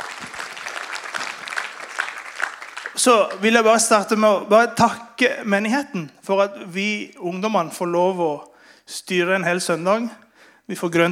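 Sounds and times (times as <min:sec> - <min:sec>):
congregation applause at a youth-led Sunday church service: 0:00.0 - 0:04.0
speech: 0:03.0 - 0:11.1.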